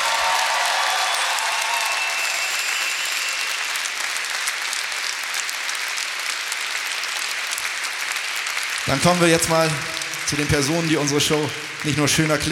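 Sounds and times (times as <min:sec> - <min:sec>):
audience applause: 0:00.0 - 0:12.5
speech: 0:08.9 - 0:12.5.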